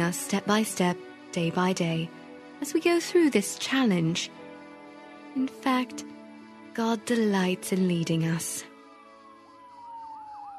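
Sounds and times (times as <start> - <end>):
speech: 0.1 - 4.4, 5.3 - 6.1, 6.8 - 8.7
fire engine sirens: 8.1 - 10.5.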